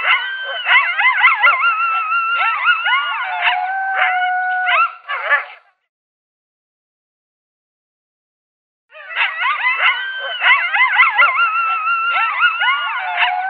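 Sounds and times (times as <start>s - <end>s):
coyote locator call of yips and howls: 0.0s - 5.7s, 8.9s - 13.4s.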